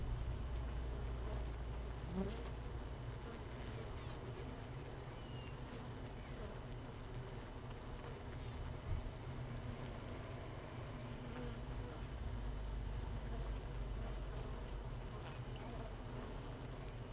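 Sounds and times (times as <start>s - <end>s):
honey bees humming inside a hive: 0.0s - 12.4s, 13.1s - 17.1s
faint clicks and scratches: 0.0s - 17.1s
speech: 2.2s - 2.6s.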